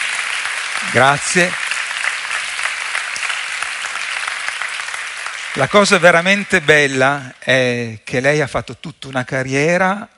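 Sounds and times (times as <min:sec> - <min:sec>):
audience applause: 0:00.0 - 0:07.3
speech: 0:00.8 - 0:01.6, 0:05.6 - 0:10.1.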